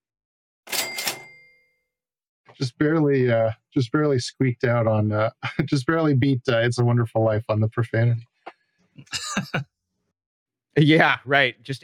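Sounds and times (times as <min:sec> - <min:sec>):
cash register ringing up a sale: 0:00.7 - 0:01.4
speech: 0:02.5 - 0:08.3, 0:09.0 - 0:09.8, 0:10.8 - 0:11.8
laughter: 0:09.1 - 0:09.6.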